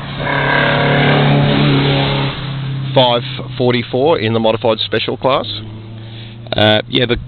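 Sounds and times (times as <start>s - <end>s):
Alfa Romeo GTV engine droning around a downhill corner at a hillclimb: 0.0s - 7.2s
speech: 3.0s - 5.8s, 6.6s - 7.2s.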